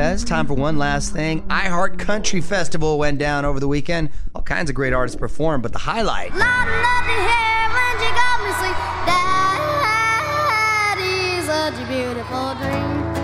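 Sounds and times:
speech: 0:00.1 - 0:08.2
boy yodeling: 0:06.3 - 0:13.0.

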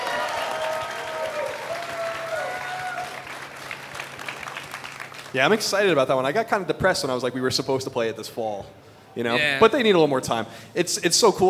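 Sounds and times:
audience applause: 0:00.0 - 0:05.7
speech: 0:05.3 - 0:11.4.

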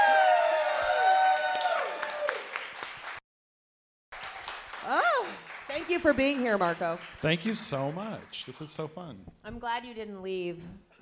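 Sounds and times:
live podcast audience in Seattle cheering and whooping: 0:00.0 - 0:02.6, 0:04.8 - 0:05.5
live podcast audience in Seattle clapping: 0:00.0 - 0:03.2, 0:04.1 - 0:09.2
speech: 0:05.8 - 0:10.9.

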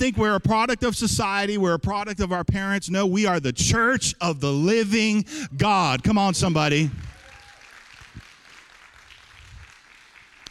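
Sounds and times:
speech: 0:00.0 - 0:07.1
light polite golf-clap applause from audience: 0:05.8 - 0:10.5.

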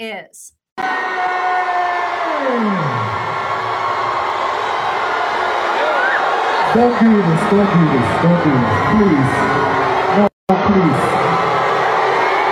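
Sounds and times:
speech: 0:00.0 - 0:03.3, 0:06.7 - 0:11.2
crowd booing at a music festival: 0:00.8 - 0:12.4.

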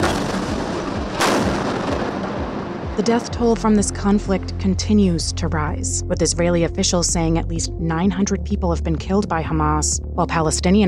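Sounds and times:
airstrike explosions: 0:00.0 - 0:03.4
speech: 0:03.0 - 0:10.8.

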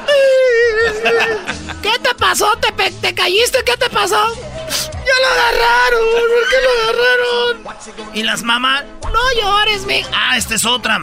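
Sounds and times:
laughter: 0:00.0 - 0:02.2, 0:05.1 - 0:07.6
voice imitating a child crying: 0:00.0 - 0:02.2, 0:04.7 - 0:07.6
speech: 0:02.4 - 0:11.0.

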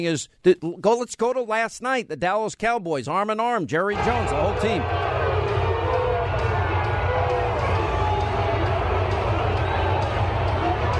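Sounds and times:
speech: 0:00.0 - 0:05.2
large crowd booing loudly: 0:03.9 - 0:10.9.

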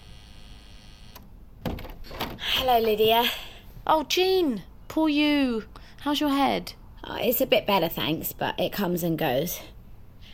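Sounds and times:
door entry buzzer: 0:00.0 - 0:01.9
speech: 0:02.6 - 0:09.7.

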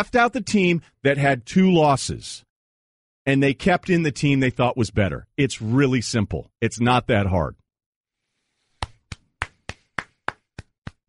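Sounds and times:
speech: 0:00.0 - 0:02.5, 0:03.2 - 0:07.6
extended applause: 0:08.8 - 0:11.0.

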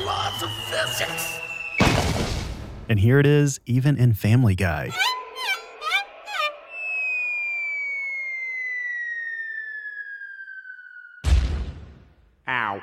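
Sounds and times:
cartoon falling whistle sound effect: 0:00.0 - 0:02.1, 0:04.9 - 0:11.3
speech: 0:00.4 - 0:01.5, 0:02.9 - 0:05.1
sudden loud crash: 0:01.8 - 0:02.8, 0:11.2 - 0:12.2.

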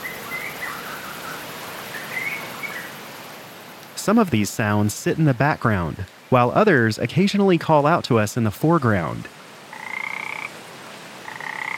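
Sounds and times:
birds chirping outdoors: 0:00.0 - 0:03.0
speech: 0:04.0 - 0:09.4.

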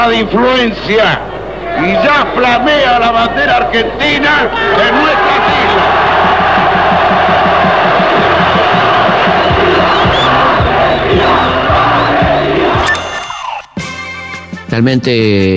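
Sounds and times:
speech: 0:00.0 - 0:06.0, 0:14.8 - 0:15.5
massive crowd roaring and cheering in acclaim: 0:00.1 - 0:14.0
steady rhythmic chant: 0:03.7 - 0:13.8.

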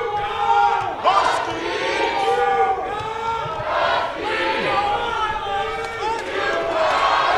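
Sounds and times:
large crowd of sports fans cheering and chanting: 0:00.0 - 0:07.3.

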